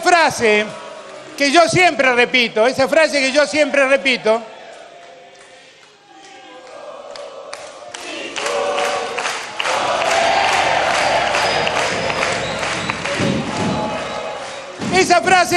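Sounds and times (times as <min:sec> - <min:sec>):
speech: 0:00.2 - 0:00.8, 0:01.4 - 0:04.5
audience applauding: 0:06.2 - 0:14.8.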